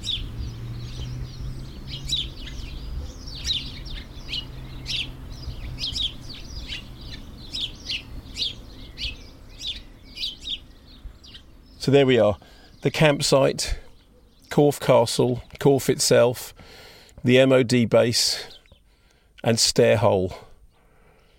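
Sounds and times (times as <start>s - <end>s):
birdsong at a campsite: 0.0s - 21.3s
speech: 11.9s - 13.8s, 14.6s - 18.5s, 19.4s - 20.4s.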